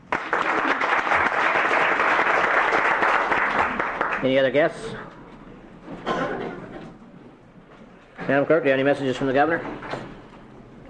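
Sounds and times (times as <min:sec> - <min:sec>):
applause welcoming a guest in a legislative chamber: 0:00.0 - 0:04.3
speech: 0:04.2 - 0:05.2, 0:08.3 - 0:09.9.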